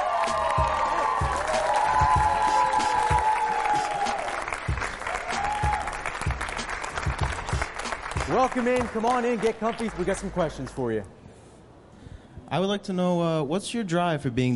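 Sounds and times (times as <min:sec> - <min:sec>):
whoops and shouts from a crowd: 0:00.0 - 0:04.5, 0:05.1 - 0:06.0
crowd applauding a football player brought onto a show: 0:00.0 - 0:10.9
speech: 0:08.3 - 0:11.2, 0:12.5 - 0:14.5.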